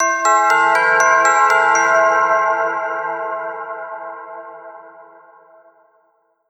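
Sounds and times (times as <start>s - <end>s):
bell: 0.0s - 6.0s.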